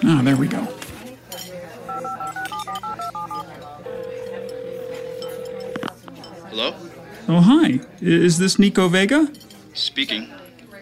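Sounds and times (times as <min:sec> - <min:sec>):
low noise: 0:00.0 - 0:10.8
speech: 0:00.1 - 0:00.8, 0:06.6 - 0:10.8
touch-tone telephone keypad beeps: 0:01.9 - 0:05.9.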